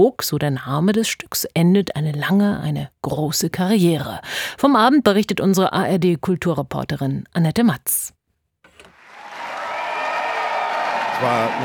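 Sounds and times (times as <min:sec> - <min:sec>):
speech: 0:00.0 - 0:08.2, 0:11.2 - 0:11.6
audience applause after the premiere of a ballet at the Hamburg Ballet Days: 0:09.0 - 0:11.6.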